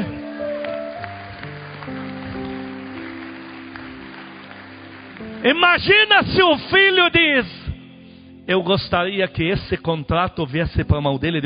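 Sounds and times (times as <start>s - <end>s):
audience applause: 0.0s - 6.1s
low keyboard chords: 0.0s - 11.4s
speech: 5.4s - 7.6s, 8.5s - 11.4s.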